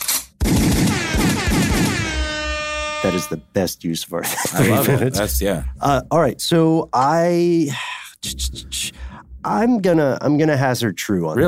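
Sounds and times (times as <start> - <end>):
gunshot sound effect with rapid rattle of repeated blasts: 0.4 - 2.3
speech: 3.0 - 11.4
laughter: 4.2 - 5.6.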